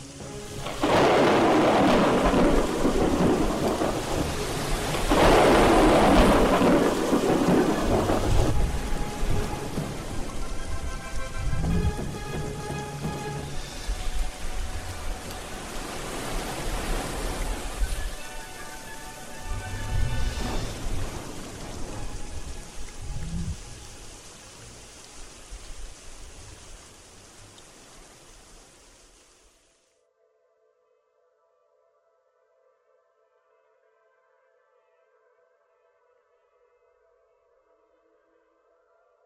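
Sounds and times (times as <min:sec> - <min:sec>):
heavy rain: 0:00.0 - 0:29.9
deep thunder rumbling: 0:00.4 - 0:24.9.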